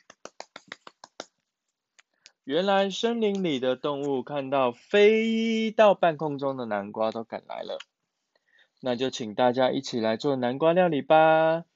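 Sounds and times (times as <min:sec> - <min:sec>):
hands clapping: 0:00.0 - 0:01.3, 0:03.3 - 0:04.1
speech: 0:02.5 - 0:07.9, 0:08.8 - 0:11.7.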